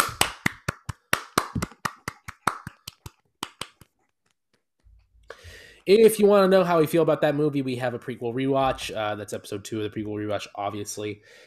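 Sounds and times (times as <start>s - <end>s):
clapping: 0.0s - 3.9s
speech: 5.8s - 11.4s.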